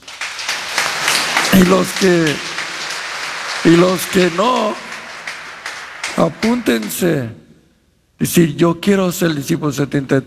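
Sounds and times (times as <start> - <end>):
audience applause: 0.0 - 7.3
speech: 1.6 - 2.5, 3.6 - 4.9, 6.2 - 7.4, 8.2 - 10.2.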